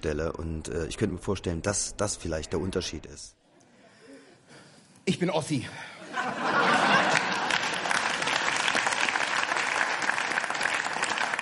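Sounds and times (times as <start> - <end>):
speech: 0.0 - 3.4, 5.1 - 6.8
laughter: 6.0 - 8.5
audience applause: 6.6 - 11.4.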